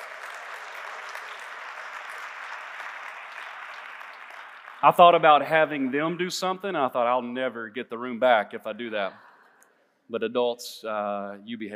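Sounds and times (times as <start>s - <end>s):
church audience round of applause: 0.0s - 6.0s
speech: 4.8s - 9.3s, 10.1s - 11.7s.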